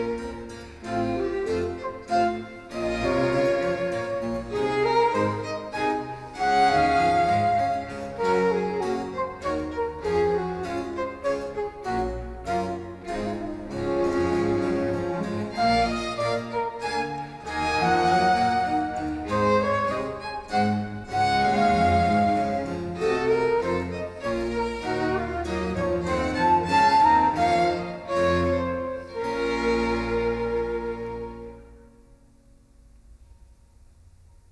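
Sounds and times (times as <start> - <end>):
orchestral suite minuet in B minor: 0.0 - 32.5.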